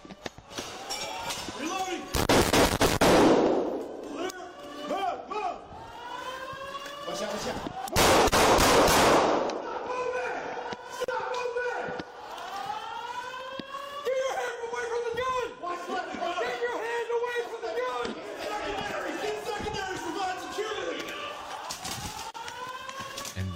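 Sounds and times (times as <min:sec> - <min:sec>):
wailing siren-like tones: 0:00.0 - 0:02.2, 0:03.6 - 0:08.0, 0:09.4 - 0:23.5
gunshots from a person shooting at police from a second-floor window: 0:02.2 - 0:03.8, 0:08.0 - 0:09.5.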